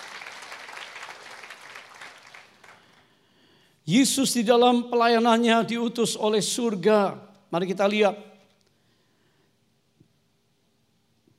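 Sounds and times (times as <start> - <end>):
audience applause: 0.0 - 3.0
speech: 3.9 - 8.3.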